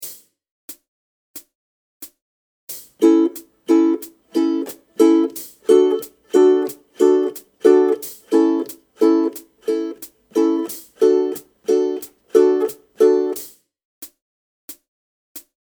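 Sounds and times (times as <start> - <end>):
ukulele strumming: 3.0 - 13.5.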